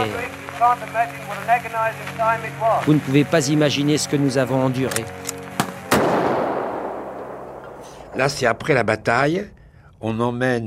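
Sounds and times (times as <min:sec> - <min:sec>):
speech: 0:00.0 - 0:05.4, 0:08.2 - 0:10.6
cannons firing during the Battle of the Somme in the First World War: 0:05.6 - 0:08.8.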